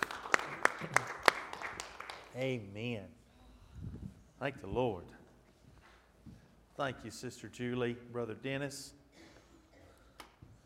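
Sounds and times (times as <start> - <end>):
audience clapping in unison: 0.0 - 2.6
speech: 2.4 - 3.2, 4.4 - 5.2, 6.8 - 9.0.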